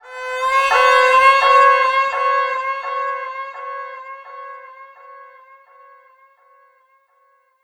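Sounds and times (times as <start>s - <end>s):
violin effects: 0.0s - 5.1s.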